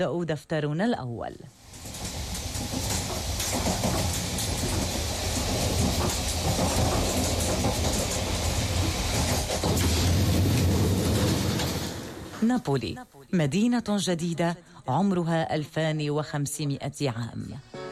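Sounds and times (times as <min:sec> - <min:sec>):
speech: 0:00.0 - 0:01.6, 0:12.4 - 0:17.8
train wheels clickety-clack on rails: 0:01.6 - 0:12.6
train from Naples rumbling: 0:01.6 - 0:12.7.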